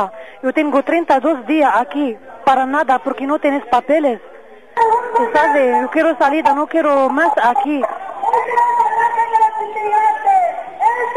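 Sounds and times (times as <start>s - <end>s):
speech: 0.0s - 8.6s
protest demonstration crowd shouting outside: 4.8s - 11.1s.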